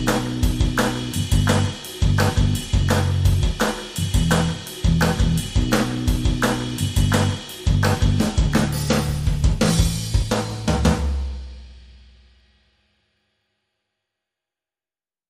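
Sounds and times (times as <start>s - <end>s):
clap: 0.0s - 9.2s
bass: 0.0s - 12.2s
drums: 0.0s - 12.9s.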